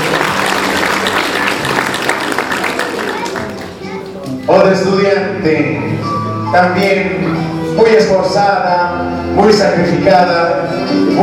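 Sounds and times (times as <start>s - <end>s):
crowd audience applause: 0.0s - 3.8s
speech: 4.5s - 11.2s.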